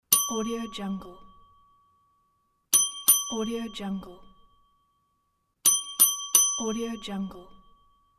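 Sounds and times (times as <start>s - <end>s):
bell dinging: 0.1s - 0.8s, 2.8s - 3.7s, 5.7s - 7.1s.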